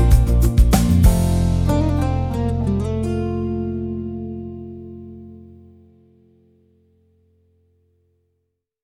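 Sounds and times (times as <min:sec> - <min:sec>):
dynamic folk music: 0:00.0 - 0:05.0.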